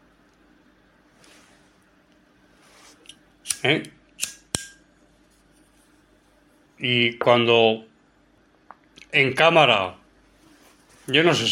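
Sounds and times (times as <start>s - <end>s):
lighter being flicked: 3.0s - 4.8s
speech: 3.6s - 4.0s, 6.8s - 7.9s, 9.1s - 10.0s, 11.1s - 11.5s.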